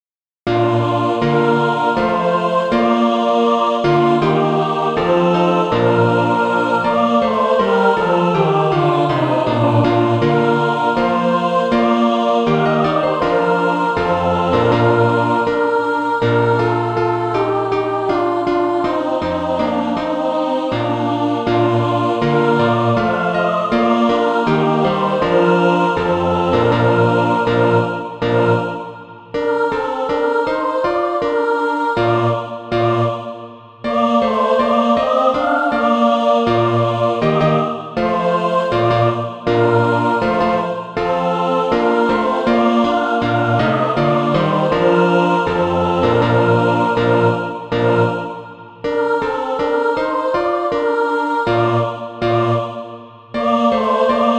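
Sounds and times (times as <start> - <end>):
mixed practice music: 0.5 - 54.3.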